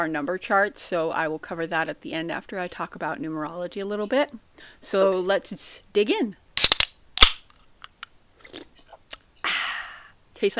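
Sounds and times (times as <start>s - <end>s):
speech: 0.0s - 6.4s, 10.4s - 10.5s
drink being cracked open: 6.6s - 8.1s.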